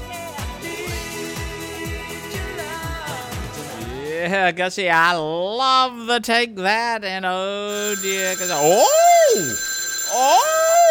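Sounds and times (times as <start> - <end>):
speech: 4.2 - 10.8
loud electronic telephone ring: 7.7 - 10.8.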